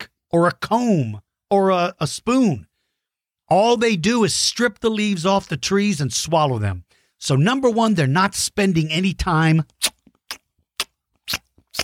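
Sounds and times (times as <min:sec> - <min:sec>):
speech: 0:00.3 - 0:02.7, 0:03.5 - 0:10.0
person chewing: 0:09.7 - 0:11.8.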